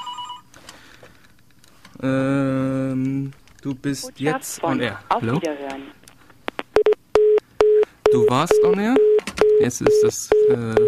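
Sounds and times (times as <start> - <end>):
telephone ringing for an incoming call to a call-in show: 0.0 - 0.5, 6.8 - 10.8
speech: 2.0 - 2.5, 3.6 - 6.0, 8.3 - 9.0, 9.6 - 10.8.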